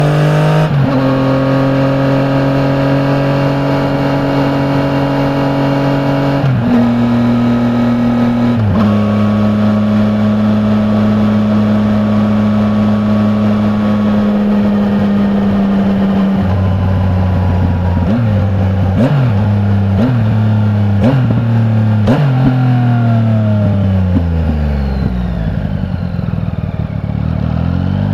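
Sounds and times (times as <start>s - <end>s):
2015 Yamaha MT09 motorcycle engine starting onboard: 0.0s - 28.1s.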